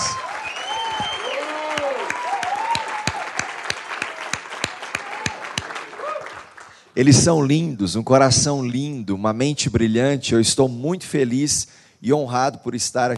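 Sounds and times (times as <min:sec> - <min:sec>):
audience applause: 0:00.0 - 0:06.9
speech: 0:07.0 - 0:13.1.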